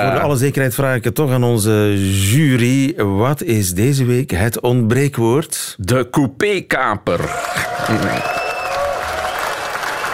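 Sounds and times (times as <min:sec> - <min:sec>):
speech: 0:00.0 - 0:08.4
audience applauding and cheering: 0:07.2 - 0:10.1.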